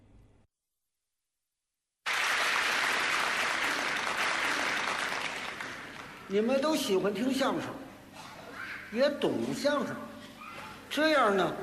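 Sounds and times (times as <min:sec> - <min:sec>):
audience applause: 0:02.1 - 0:06.3
speech: 0:06.3 - 0:07.8, 0:08.9 - 0:10.1, 0:10.9 - 0:11.6.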